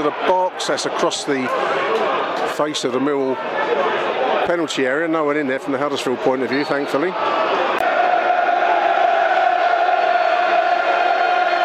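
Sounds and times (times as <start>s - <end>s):
speech: 0.0s - 7.5s
football stadium crowd singing and chanting: 7.8s - 11.6s.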